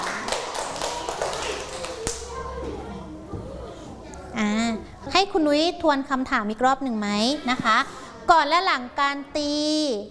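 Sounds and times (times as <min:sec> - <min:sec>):
class of children clapping for a student in a classroom: 0:00.0 - 0:02.4
children's voices chattering: 0:00.0 - 0:09.0
speech: 0:05.3 - 0:10.0.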